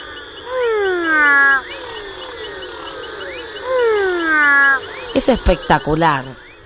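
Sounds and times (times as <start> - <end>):
frog calls: 0.0 - 6.6
speech: 5.2 - 6.4.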